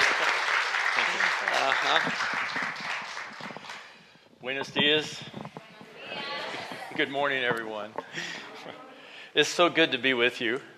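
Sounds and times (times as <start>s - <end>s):
church congregation applause welcoming a pastor: 0.0s - 4.1s
speech: 1.8s - 2.7s, 4.4s - 5.4s, 7.0s - 8.8s, 9.4s - 10.7s.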